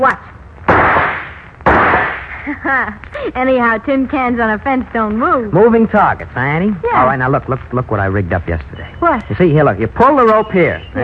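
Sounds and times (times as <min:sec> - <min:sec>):
speech: 0:00.0 - 0:00.3, 0:02.4 - 0:11.0
rifle shot: 0:00.7 - 0:02.4
loud hiss: 0:00.7 - 0:02.6.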